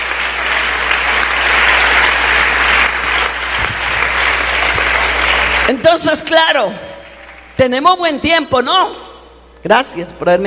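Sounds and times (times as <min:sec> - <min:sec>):
audience applause: 0:00.0 - 0:06.2, 0:06.9 - 0:07.6
speech: 0:05.7 - 0:06.9, 0:07.6 - 0:09.0, 0:09.6 - 0:10.4.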